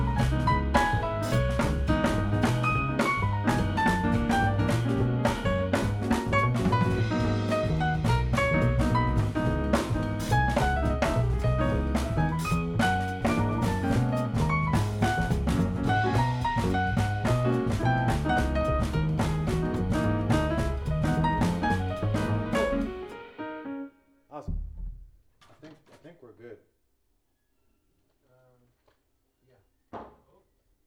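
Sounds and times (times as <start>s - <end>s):
jazz music: 0.0s - 24.5s.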